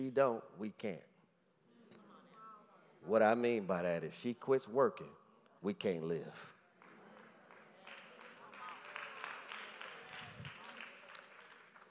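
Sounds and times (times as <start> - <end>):
speech: 0.0 - 1.1, 3.0 - 6.6
soft, quiet hand clapping from a group of people: 6.8 - 11.8.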